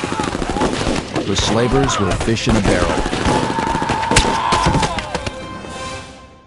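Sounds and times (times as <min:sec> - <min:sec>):
Uzi and other weapons gunfire volley: 0:00.0 - 0:05.4
speech: 0:01.3 - 0:03.2.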